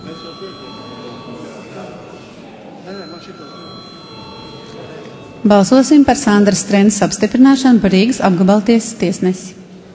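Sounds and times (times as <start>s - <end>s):
parliament voting bell ringing: 0.0s - 7.7s
low murmur of voices: 0.0s - 9.9s
speech: 0.3s - 0.8s, 2.9s - 3.9s, 5.4s - 9.6s.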